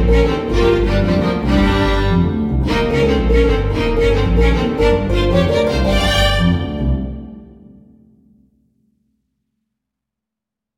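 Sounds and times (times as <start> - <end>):
violin: 0.0 - 7.7.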